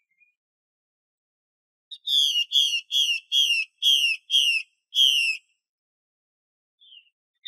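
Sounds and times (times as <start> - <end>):
Chinese hwamei whistling: 1.9 - 5.4.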